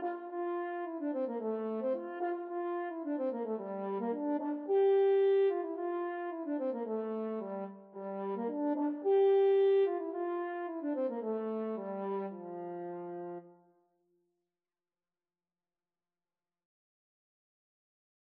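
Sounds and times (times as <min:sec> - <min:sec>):
french horn duet: 0:00.0 - 0:13.6.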